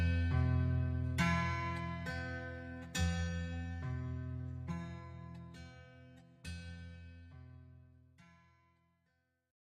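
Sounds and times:
dulcimer: 0:00.0 - 0:07.6.

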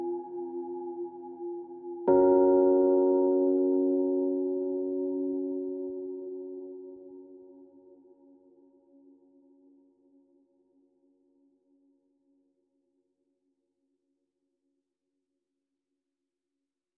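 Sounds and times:
electric piano solo: 0:02.1 - 0:07.7.

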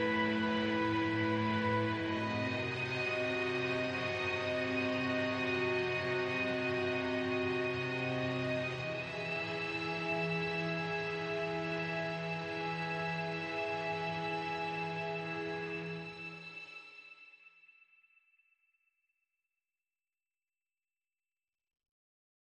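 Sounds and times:
string instruments: 0:00.0 - 0:17.6.

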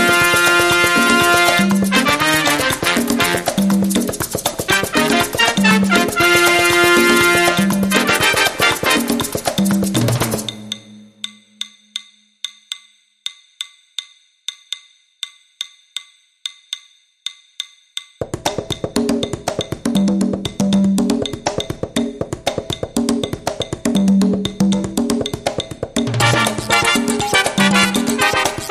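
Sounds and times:
big band mambo horns: 0:00.0 - 0:03.8, 0:04.7 - 0:09.5, 0:26.2 - 0:28.6
big band mambo drums: 0:00.0 - 0:10.7, 0:18.2 - 0:28.6.

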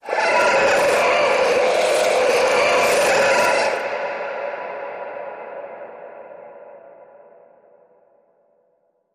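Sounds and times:
creature: 0:00.0 - 0:04.0.

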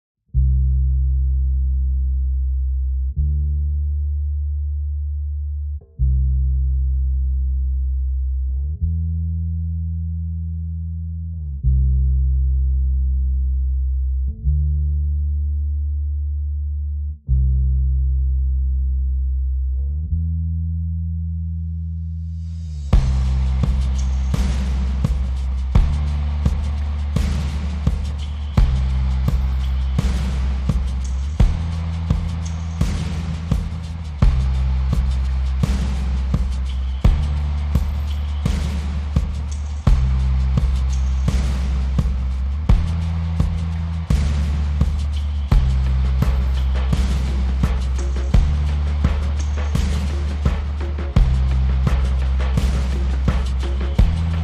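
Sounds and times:
bass: 0:00.0 - 0:54.4
drums: 0:22.7 - 0:54.4.

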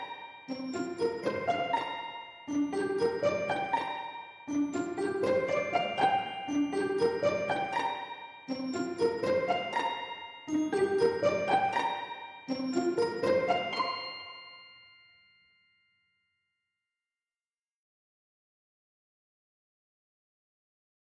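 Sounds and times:
strings: 0:00.0 - 0:14.7
glockenspiel: 0:00.0 - 0:16.5.

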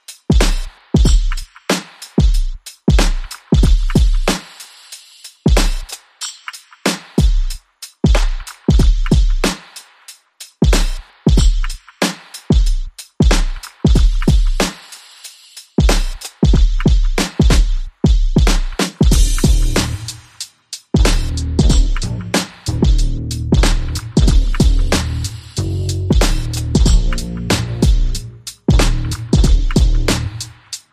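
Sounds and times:
drums: 0:00.0 - 0:30.9
bass: 0:19.1 - 0:20.3, 0:21.0 - 0:30.6.

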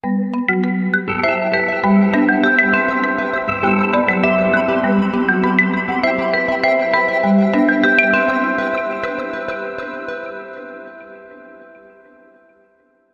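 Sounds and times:
bells ringing: 0:01.0 - 0:09.7.

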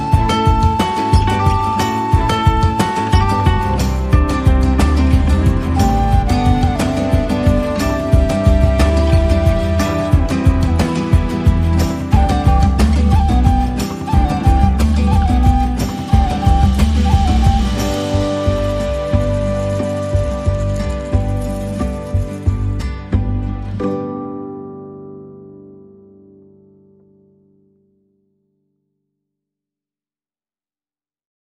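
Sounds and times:
latin lounge music: 0:00.0 - 0:25.0.

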